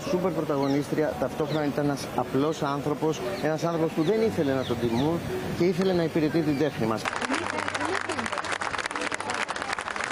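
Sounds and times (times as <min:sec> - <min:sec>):
faint voices murmuring: 0:00.0 - 0:10.1
speech: 0:00.1 - 0:07.3
crowd applause at a funeral: 0:07.0 - 0:10.1.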